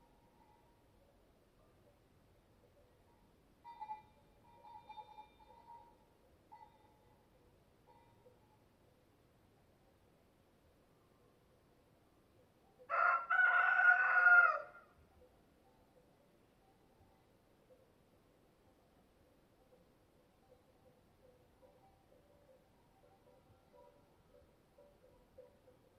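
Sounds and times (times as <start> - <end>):
rooster crowing cock-a-doodle-doo: 12.9 - 14.9.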